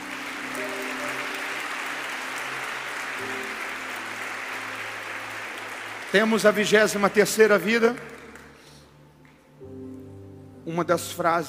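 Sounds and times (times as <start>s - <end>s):
audience applause: 0.0s - 8.6s
soft sustained musical tones: 0.0s - 11.4s
speech: 6.1s - 8.2s, 10.7s - 11.4s.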